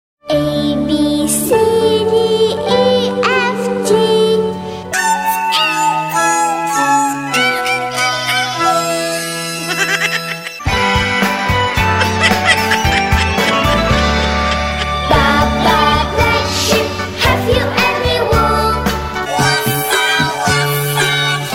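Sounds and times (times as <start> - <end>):
funny children's song: 0.3 - 21.5
laughter: 9.3 - 10.7, 11.8 - 16.0.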